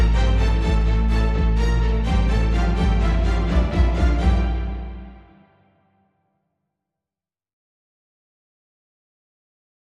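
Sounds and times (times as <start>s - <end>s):
bass strings: 0.0s - 5.7s.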